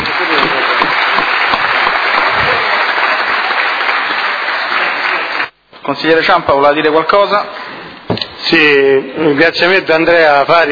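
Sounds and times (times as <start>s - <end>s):
applause: 0.0s - 5.6s
speech: 5.9s - 10.6s.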